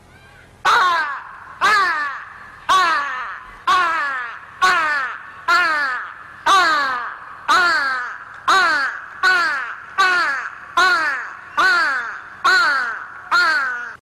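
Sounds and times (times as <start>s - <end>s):
crows cawing: 0.7s - 14.0s.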